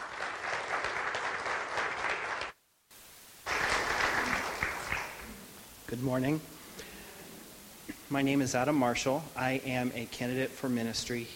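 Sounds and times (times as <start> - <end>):
church congregation applause at Pacific Beach United Methodist Church: 0.0 - 2.6, 3.4 - 5.6
speech: 5.9 - 6.6, 8.1 - 11.3.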